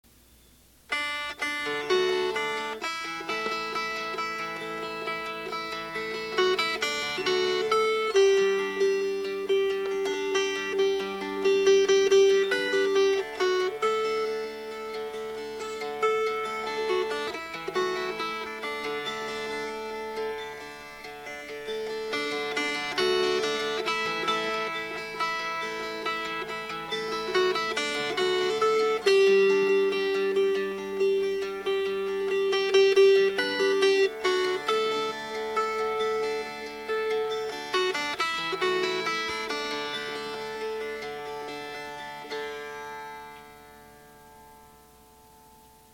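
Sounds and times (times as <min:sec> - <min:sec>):
fingerpicked strings: 0:00.1 - 0:45.9.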